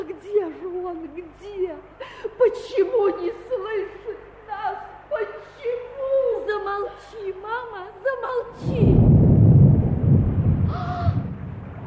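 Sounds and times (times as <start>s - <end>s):
speech: 0.9s - 4.9s, 6.5s - 9.0s
thunder: 8.6s - 11.8s.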